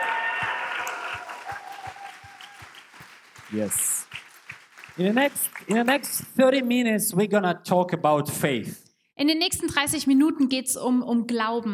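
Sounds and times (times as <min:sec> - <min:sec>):
crowd applauding: 0:00.0 - 0:06.3
speech: 0:03.5 - 0:03.9, 0:05.0 - 0:11.7.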